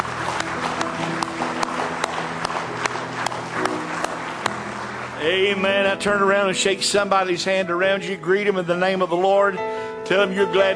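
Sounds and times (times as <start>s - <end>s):
audience clapping: 0.0s - 7.4s
speech: 5.2s - 10.7s.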